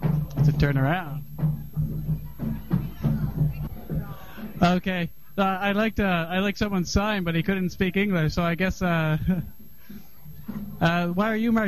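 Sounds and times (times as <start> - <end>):
murmur of a thick crowd of marchers at a street march: 0.0 - 5.4, 8.9 - 11.6
speech: 0.6 - 1.5, 4.6 - 9.6, 10.8 - 11.6.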